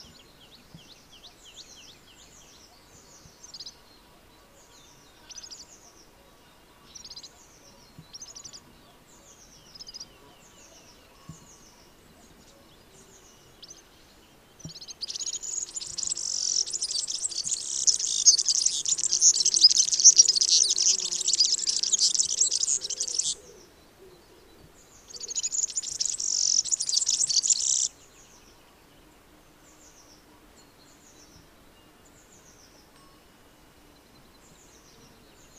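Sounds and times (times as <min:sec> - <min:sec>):
serin bird calling: 0:14.7 - 0:24.5, 0:25.1 - 0:27.9.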